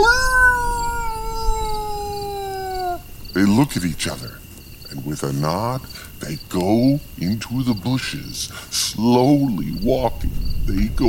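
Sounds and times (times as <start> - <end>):
howl in the bushes: 0.0 - 3.1
speech: 3.4 - 4.4, 5.0 - 10.1, 10.7 - 11.0.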